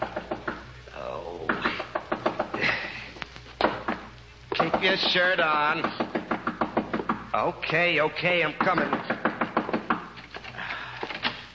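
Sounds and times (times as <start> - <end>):
knocking on a hotel room door: 0.0 - 0.6, 1.5 - 2.6, 3.6 - 5.2, 5.8 - 7.3, 8.6 - 10.1
speech: 4.8 - 6.0, 7.4 - 9.1.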